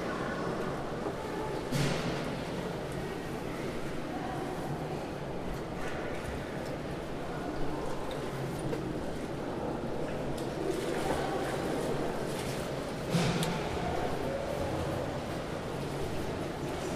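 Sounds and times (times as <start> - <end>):
indoor swimming pool ambience: 0.0 - 16.9.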